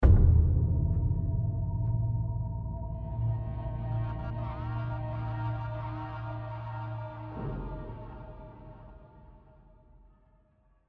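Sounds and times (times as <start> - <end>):
tension music: 0.0 - 9.1.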